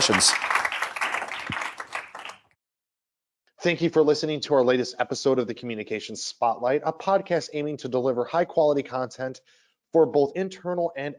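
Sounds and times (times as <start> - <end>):
speech: 0.0 - 0.6, 3.6 - 11.1
audience applause: 0.0 - 2.4.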